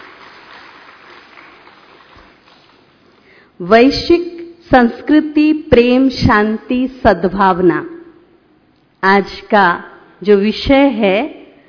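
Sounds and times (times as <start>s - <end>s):
crowd applauding: 0.0s - 2.8s
speech: 3.6s - 7.9s, 9.0s - 11.4s.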